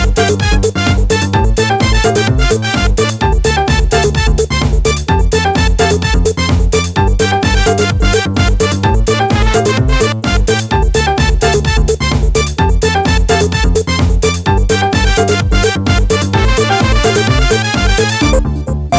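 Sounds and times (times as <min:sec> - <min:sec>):
conga drumming: 0:00.0 - 0:18.4.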